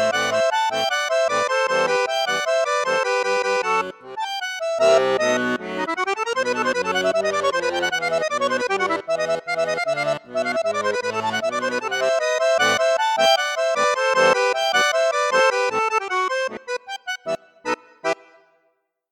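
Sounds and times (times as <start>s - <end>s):
accordion with bassoon and flute registers: 0.0s - 19.1s.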